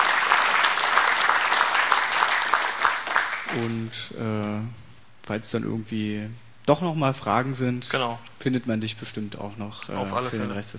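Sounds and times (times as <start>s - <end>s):
audience clapping after a talk: 0.0s - 3.9s
speech: 3.6s - 10.7s.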